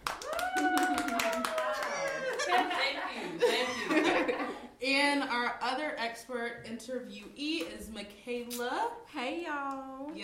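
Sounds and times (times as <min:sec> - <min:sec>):
crowd applauding: 0:00.0 - 0:02.9
high-pitched cheers and whooping voices: 0:00.1 - 0:02.6
laughter: 0:00.6 - 0:04.7
speech: 0:05.1 - 0:10.2.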